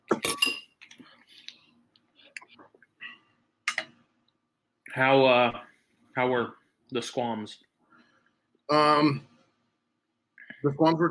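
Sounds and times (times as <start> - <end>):
spoon clinking in a bowl of mint chocolate ice cream: 0.1 - 0.8
speech: 5.0 - 7.7, 8.7 - 9.3, 10.6 - 11.0.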